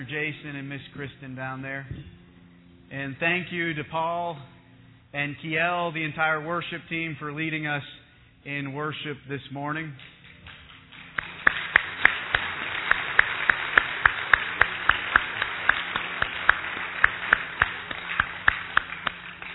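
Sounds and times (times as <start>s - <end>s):
speech: 0.0s - 2.2s, 2.9s - 10.1s
audience applause: 10.4s - 19.5s.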